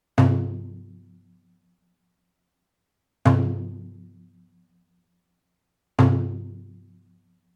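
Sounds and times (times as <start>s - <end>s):
taiko drums: 0.2s - 1.0s, 3.3s - 4.1s, 6.0s - 6.8s.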